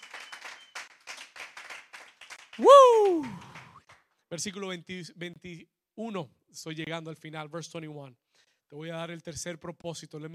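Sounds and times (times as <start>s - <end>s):
audience clapping hands: 0.0s - 4.1s
speech: 2.6s - 3.4s, 4.3s - 10.3s.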